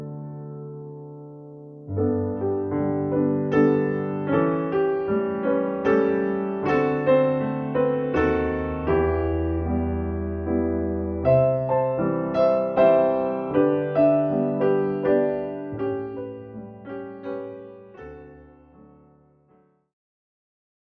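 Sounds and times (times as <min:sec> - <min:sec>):
concert waltz for ballet battement fondu: 0:02.0 - 0:17.9.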